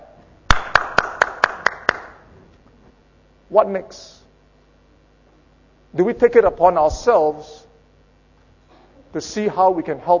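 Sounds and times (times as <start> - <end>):
audience clapping: 0.5 - 2.2
speech: 3.5 - 4.2, 5.9 - 7.6, 9.1 - 10.1.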